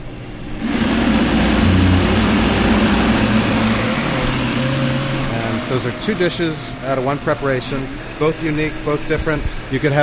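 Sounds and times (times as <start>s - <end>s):
blender pureeing spinach: 0.6s - 8.5s
speech: 5.8s - 10.0s.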